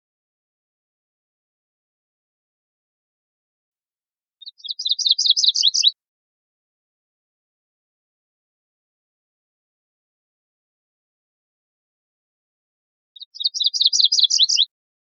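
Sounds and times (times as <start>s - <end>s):
MacGillivray's warbler singing buzzy trills: 4.4s - 6.0s, 13.2s - 14.7s.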